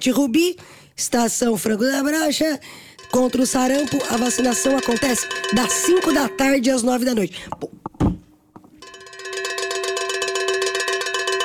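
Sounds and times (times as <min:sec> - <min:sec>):
speech: 0:00.0 - 0:07.8
cowbell ringing: 0:03.0 - 0:07.1, 0:08.8 - 0:11.4.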